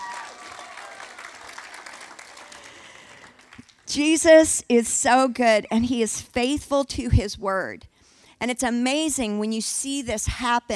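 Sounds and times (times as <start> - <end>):
church congregation applauding a man after his testimony: 0.0 - 3.9
speech: 3.9 - 10.7.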